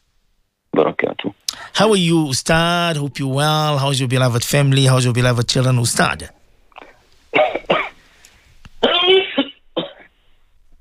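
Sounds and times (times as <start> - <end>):
speech: 1.8 - 6.4
sneezing: 6.8 - 8.0, 8.8 - 10.2.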